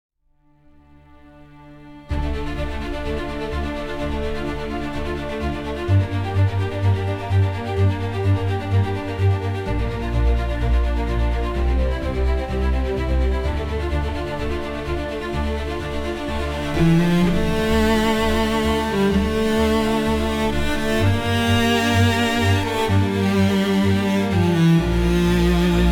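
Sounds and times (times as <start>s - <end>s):
symphonic instrumental music: 0.8s - 25.9s.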